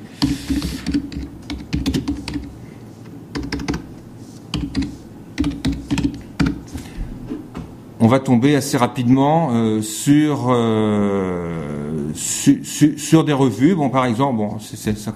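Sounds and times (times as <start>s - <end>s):
typing a search on a computer keyboard: 0.2s - 2.5s, 3.3s - 3.9s, 4.5s - 6.7s
speech: 8.1s - 15.1s.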